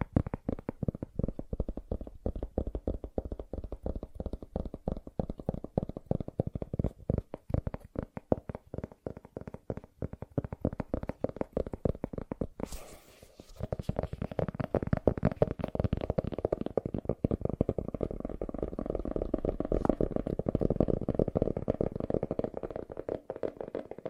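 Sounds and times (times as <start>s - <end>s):
rapid dense tapping: 0.0s - 12.7s, 13.6s - 24.0s
scratchy rustle: 12.6s - 13.9s.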